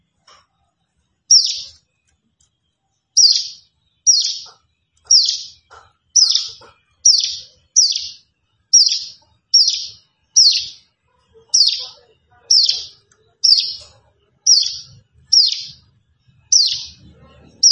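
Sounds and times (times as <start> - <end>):
plain prinia singing: 1.3 - 1.8, 3.2 - 5.6, 6.2 - 10.8, 11.5 - 17.7.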